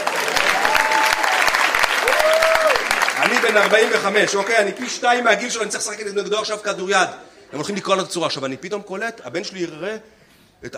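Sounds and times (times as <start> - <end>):
audience applause: 0.0 - 5.3
speech: 3.5 - 10.7.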